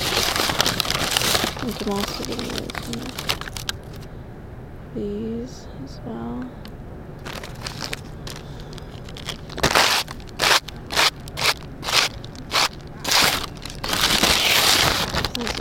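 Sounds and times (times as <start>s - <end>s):
plastic baggie holding snake skin crinkling: 0.0s - 4.1s, 7.2s - 15.5s
speech: 1.7s - 3.5s, 5.0s - 6.6s.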